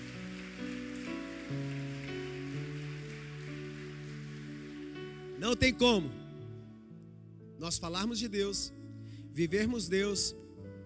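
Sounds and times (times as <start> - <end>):
audience applauding: 0.0 - 5.9
sustained keyboard or organ chords: 0.0 - 9.0
speech: 5.4 - 6.2, 7.6 - 8.8, 9.4 - 10.4.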